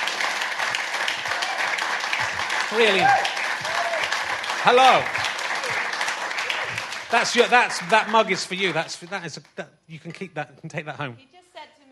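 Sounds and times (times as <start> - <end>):
comedy audience applause welcoming a comedian: 0.0 - 9.4
speech: 2.7 - 3.4, 4.6 - 5.2, 7.1 - 11.3.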